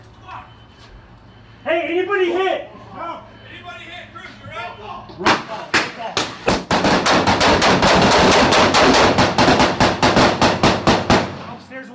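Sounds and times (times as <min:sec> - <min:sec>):
speech: 0:01.7 - 0:03.8
rapid gunfire: 0:06.5 - 0:11.6.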